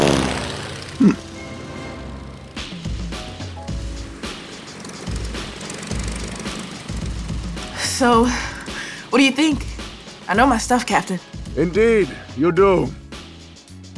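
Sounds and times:
airplane engine in flight: 0:00.0 - 0:10.9
sharp clatters: 0:00.0 - 0:11.3
speech: 0:01.0 - 0:01.2, 0:08.0 - 0:08.5, 0:09.2 - 0:09.7, 0:10.3 - 0:13.0.

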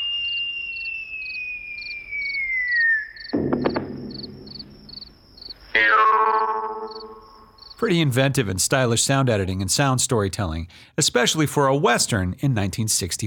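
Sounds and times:
falling bomb-like whistle: 0:00.0 - 0:07.4
distant muted thud: 0:03.4 - 0:05.1
speech: 0:07.8 - 0:13.2.

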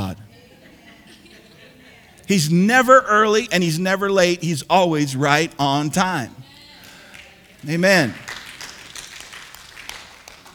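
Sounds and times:
laughter: 0:00.0 - 0:08.3
speech: 0:02.3 - 0:06.5, 0:07.6 - 0:08.3
audience clapping: 0:04.8 - 0:10.5.

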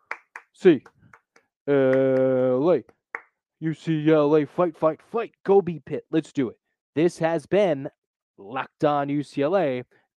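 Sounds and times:
rhythmic hand claps: 0:00.0 - 0:03.4
speech: 0:00.6 - 0:01.0, 0:01.6 - 0:03.0, 0:03.6 - 0:10.1.

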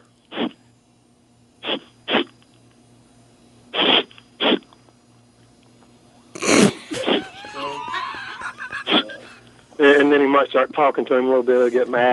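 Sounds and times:
voice imitating a dog sniffing: 0:00.3 - 0:00.6, 0:01.6 - 0:02.3, 0:03.7 - 0:04.8, 0:06.4 - 0:07.4, 0:08.9 - 0:09.2
laughter: 0:06.7 - 0:09.5
speech: 0:10.1 - 0:12.1.

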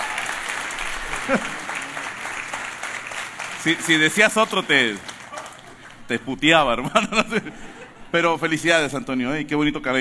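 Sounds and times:
audience applause: 0:00.0 - 0:06.2
laughter: 0:01.0 - 0:02.4, 0:06.8 - 0:08.5
speech: 0:01.3 - 0:01.6, 0:03.6 - 0:05.1, 0:06.1 - 0:09.9.

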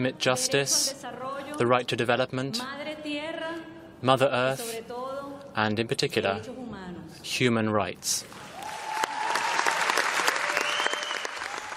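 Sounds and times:
speech: 0:00.0 - 0:03.2, 0:04.0 - 0:04.9, 0:05.6 - 0:08.4
applause from a large conference audience: 0:08.4 - 0:11.7
faint tonal whistles: 0:10.6 - 0:11.4.

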